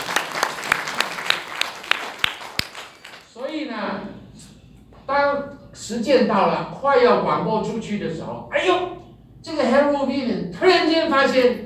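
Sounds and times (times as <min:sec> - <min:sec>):
audience applause: 0:00.0 - 0:03.3
speech: 0:05.9 - 0:11.6.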